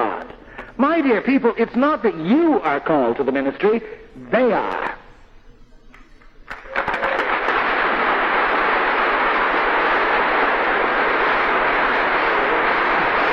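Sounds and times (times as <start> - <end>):
speech: 0.8 - 4.9
audience applause: 6.5 - 13.3.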